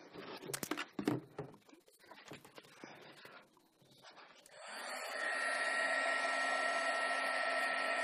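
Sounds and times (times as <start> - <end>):
handheld heat tool drying and heat-setting paint on a board: 4.5 - 8.0.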